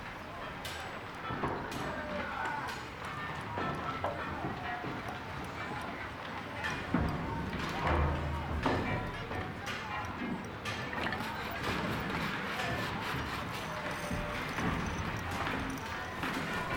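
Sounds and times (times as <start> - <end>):
shipyard ambience: 0.0 - 16.7.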